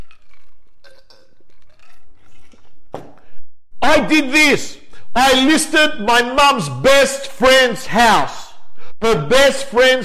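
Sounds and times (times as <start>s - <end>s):
sipping a drink: 0.0s - 3.4s
speech: 3.9s - 8.4s, 9.0s - 10.0s.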